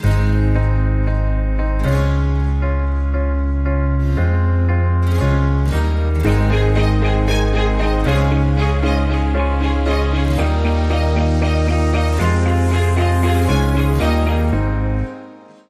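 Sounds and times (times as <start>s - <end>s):
inspiring music without drums: 0.0s - 15.6s.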